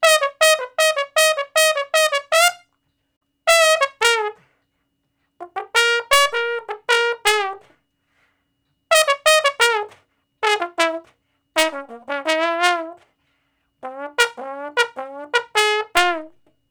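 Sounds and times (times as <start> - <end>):
trombone shuffle in B flat: 0.0 - 2.6, 3.5 - 4.5, 5.4 - 7.7, 8.9 - 13.1, 13.8 - 16.4.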